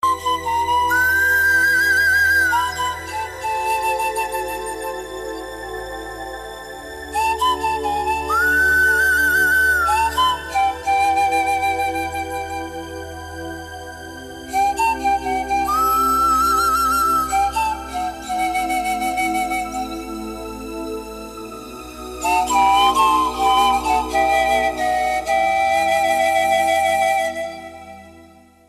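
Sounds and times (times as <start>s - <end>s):
flute tone: 0.0s - 28.6s.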